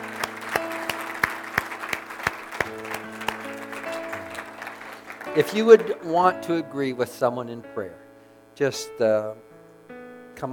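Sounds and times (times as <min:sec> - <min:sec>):
audience clapping in a steady even rhythm: 0:00.0 - 0:06.3
sustained low keyboard or organ chords: 0:00.0 - 0:10.5
speech: 0:05.4 - 0:08.0, 0:08.6 - 0:09.5.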